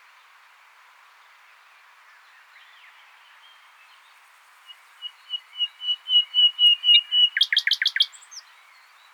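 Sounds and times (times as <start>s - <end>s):
common nightingale song: 2.4s - 9.1s.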